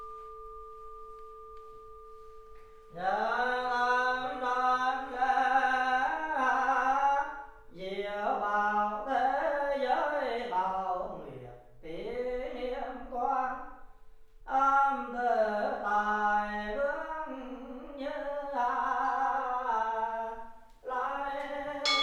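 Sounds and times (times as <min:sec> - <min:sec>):
percussion at a Buddhist temple mass in Marseille: 0:00.0 - 0:08.0, 0:17.9 - 0:22.0
chanting at a Buddhist temple mass in Marseille: 0:00.0 - 0:13.6, 0:14.5 - 0:22.0
people praying at a Buddhist temple mass in Marseille: 0:02.9 - 0:13.5, 0:14.5 - 0:22.0.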